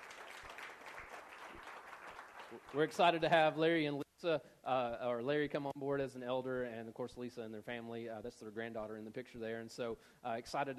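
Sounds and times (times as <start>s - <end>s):
faint audience clapping: 0.0s - 3.5s
speech: 2.5s - 10.7s.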